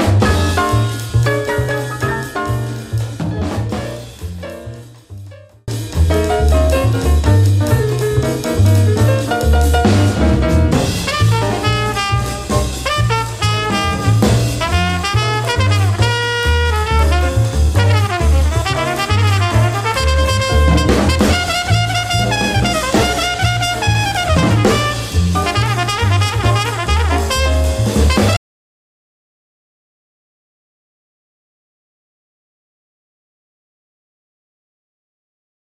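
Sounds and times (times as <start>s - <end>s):
samba blues music: 0.0s - 28.4s.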